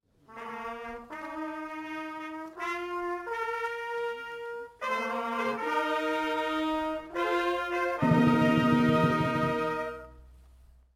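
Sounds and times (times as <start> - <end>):
fanfare: 0.3 - 10.2.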